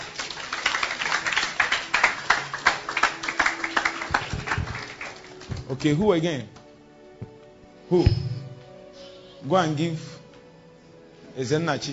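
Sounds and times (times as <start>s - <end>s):
audience clapping: 0.0s - 5.9s
speech: 5.7s - 6.6s, 7.9s - 8.2s, 9.4s - 10.1s, 11.4s - 11.9s.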